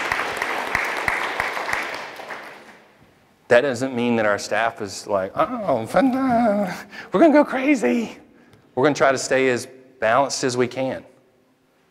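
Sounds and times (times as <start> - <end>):
crowd clapping: 0.0 - 3.0
speech: 3.5 - 8.2, 8.8 - 11.1.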